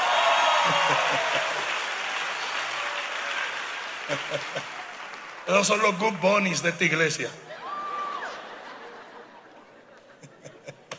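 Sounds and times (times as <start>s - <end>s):
audience applause: 0.0s - 8.8s
laughter: 0.5s - 1.8s, 4.0s - 4.9s, 7.5s - 10.9s
speech: 0.7s - 1.6s, 4.1s - 4.8s, 5.5s - 7.5s.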